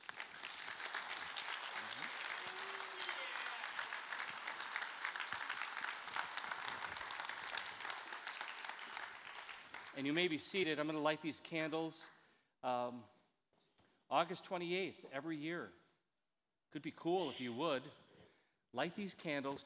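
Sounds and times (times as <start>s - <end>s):
audience applauding: 0.0s - 10.4s
speech: 10.0s - 13.1s, 14.1s - 15.8s, 16.7s - 18.0s, 18.8s - 19.6s.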